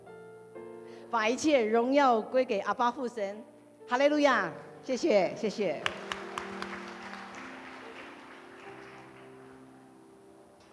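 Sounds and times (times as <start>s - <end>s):
speech: 1.1s - 6.0s
audience applause: 5.8s - 9.8s.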